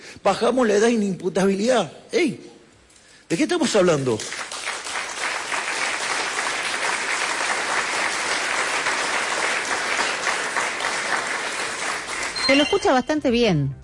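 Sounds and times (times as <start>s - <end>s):
speech: 0.2s - 2.5s, 3.3s - 4.5s, 12.5s - 13.8s
applause from a large crowd: 4.2s - 12.8s.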